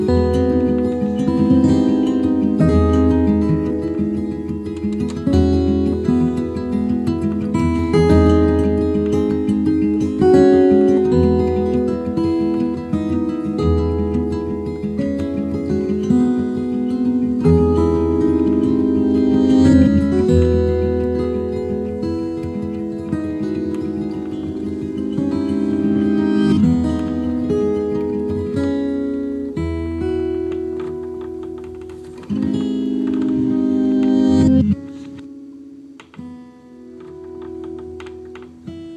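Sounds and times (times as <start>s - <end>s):
acoustic guitar music: 0.0s - 38.9s.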